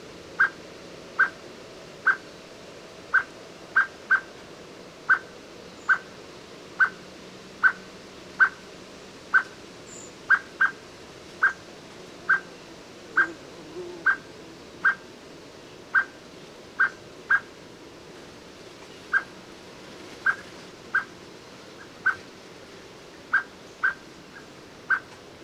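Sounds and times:
steady low background hiss: 0.0s - 25.4s
Eurasian blackbird clucking call notes: 0.4s - 0.6s, 1.2s - 1.4s, 2.0s - 2.4s, 3.1s - 4.4s, 5.1s - 6.2s, 6.8s - 8.7s, 9.3s - 10.8s, 11.4s - 15.1s, 15.9s - 16.2s, 16.8s - 17.6s, 19.1s - 19.4s, 20.2s - 21.2s, 21.8s - 22.3s, 23.3s - 25.2s.

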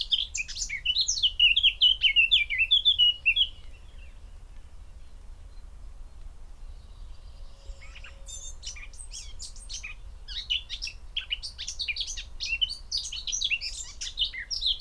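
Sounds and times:
Eurasian blackcap singing: 0.0s - 4.2s, 7.6s - 14.7s.

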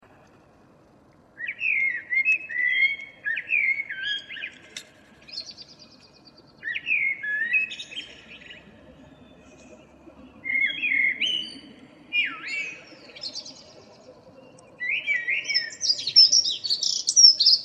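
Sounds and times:
common blackbird singing: 1.4s - 4.6s, 5.3s - 8.7s, 10.4s - 13.7s, 14.4s - 17.6s.

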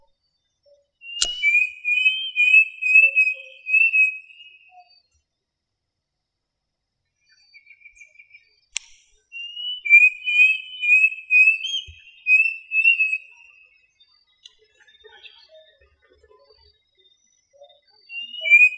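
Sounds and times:
bird whistling: 1.0s - 4.9s, 9.4s - 13.6s, 18.1s - 18.7s
sharp click: 1.2s - 1.6s, 8.8s - 9.2s.

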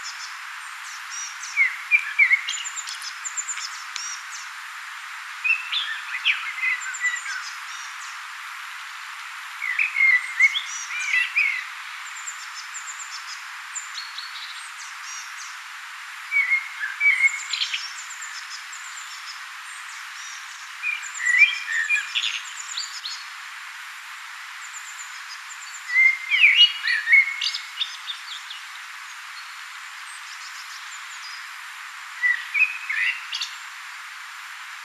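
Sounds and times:
hiss: 0.0s - 34.8s
common blackbird singing: 0.9s - 4.3s, 5.4s - 8.0s, 9.6s - 11.7s, 16.3s - 18.4s, 20.2s - 23.2s, 25.7s - 28.6s, 32.2s - 33.6s.

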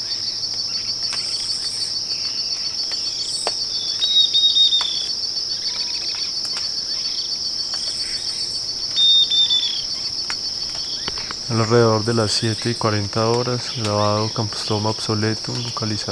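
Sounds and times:
cricket trill: 0.0s - 16.1s
bird whistling calls: 3.0s - 5.9s, 8.9s - 9.9s
speech: 11.5s - 16.1s.

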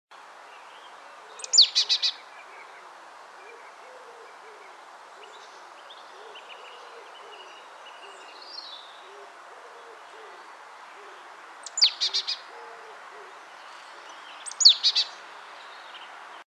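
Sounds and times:
Poecile palustris calling: 1.2s - 15.2s.

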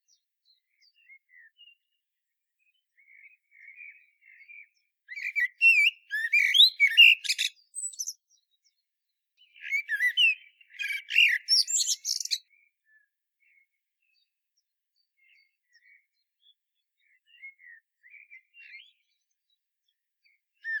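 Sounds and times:
common blackbird song: 3.0s - 8.8s, 9.4s - 12.5s, 17.0s - 19.2s.

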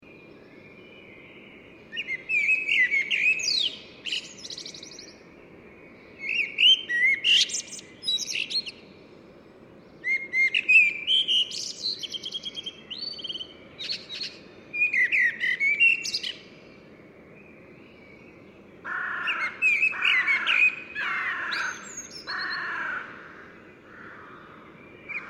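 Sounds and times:
common blackbird singing: 0.0s - 9.0s, 9.8s - 25.2s.

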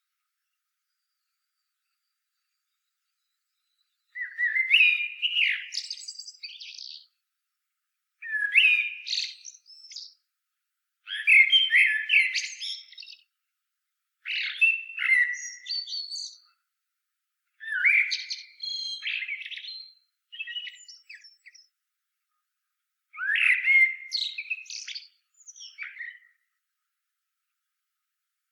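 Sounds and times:
common blackbird singing: 0.4s - 7.2s, 8.2s - 10.3s, 11.0s - 13.4s, 14.2s - 16.6s, 17.6s - 21.8s, 23.1s - 26.6s.

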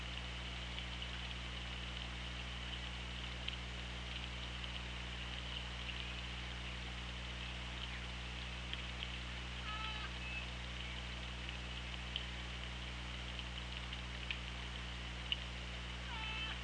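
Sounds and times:
low hum: 0.0s - 16.6s
faint clicks: 0.1s - 6.3s, 8.7s - 9.7s, 10.4s - 14.7s, 15.3s - 15.5s
orca calls: 9.6s - 10.5s, 16.0s - 16.6s.

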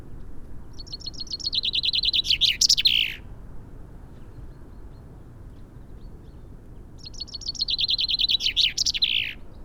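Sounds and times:
common chaffinch Fringilla coelebs song: 0.7s - 3.3s, 5.9s - 9.6s.

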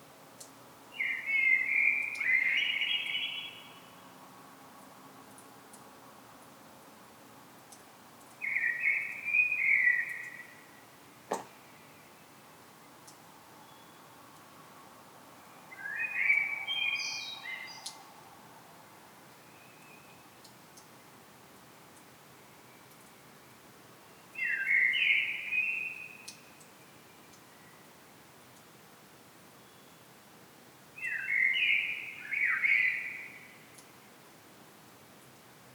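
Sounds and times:
quiet hiss: 0.0s - 35.7s
common blackbird song: 1.0s - 3.8s, 8.4s - 10.6s, 15.7s - 18.0s, 24.4s - 26.3s, 31.0s - 33.6s.

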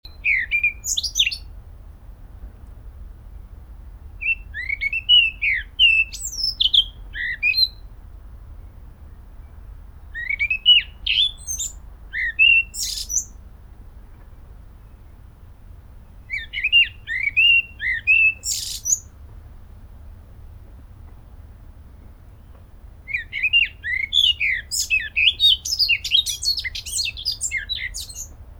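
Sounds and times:
Eurasian blackcap song: 0.0s - 1.6s, 4.1s - 7.9s, 8.6s - 13.4s, 14.6s - 19.2s, 21.5s - 28.5s.

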